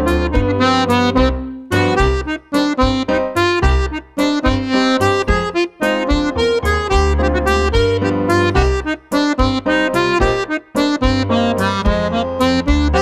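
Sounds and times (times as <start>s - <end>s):
Irish treble jig dance music: 0.0s - 13.0s.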